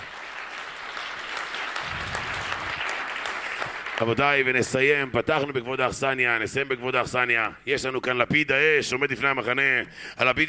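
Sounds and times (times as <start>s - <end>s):
audience applause: 0.0s - 4.6s
speech: 4.0s - 10.4s.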